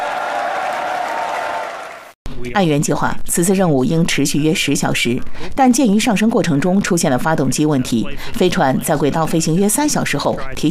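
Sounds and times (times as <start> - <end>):
rocket ground crew cheering and applauding: 0.0 - 2.2
speech: 2.4 - 10.7.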